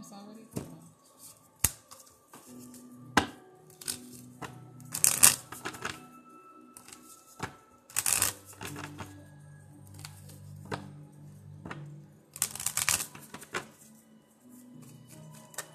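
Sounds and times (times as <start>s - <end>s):
angel abundance oracle cards shuffled by hand: 1.2s - 6.0s, 6.8s - 9.2s, 9.9s - 10.9s, 12.4s - 13.9s, 14.8s - 15.7s.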